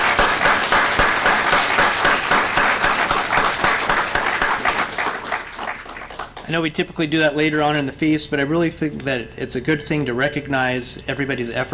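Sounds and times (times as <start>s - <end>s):
audience applause: 0.0s - 6.5s
speech: 6.5s - 11.7s.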